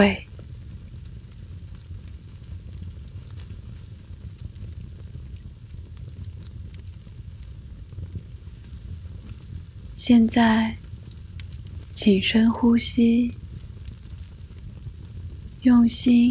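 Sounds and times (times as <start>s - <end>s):
speech: 0.0s - 0.3s, 10.0s - 10.8s, 12.0s - 13.4s, 15.6s - 16.2s
campfire crackling: 0.0s - 16.2s.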